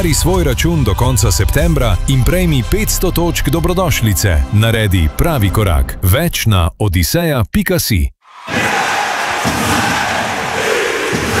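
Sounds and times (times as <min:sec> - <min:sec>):
speech: 0:00.0 - 0:08.8
ice hockey crowd cheering and shouting: 0:08.3 - 0:11.3.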